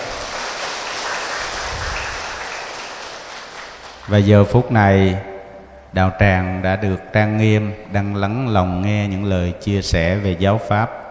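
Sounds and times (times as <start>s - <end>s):
audience applause: 0.0s - 4.2s
speech: 4.1s - 5.3s, 5.9s - 11.0s.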